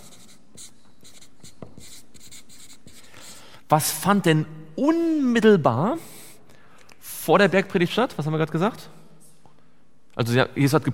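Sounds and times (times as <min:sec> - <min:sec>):
writing on a board: 0:00.0 - 0:03.4
speech: 0:03.7 - 0:06.1, 0:07.2 - 0:09.0, 0:10.2 - 0:10.9.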